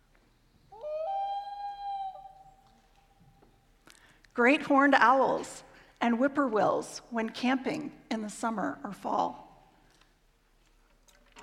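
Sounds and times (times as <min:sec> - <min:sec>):
dusk chorus of loons: 0:00.6 - 0:03.6
speech: 0:04.4 - 0:09.4.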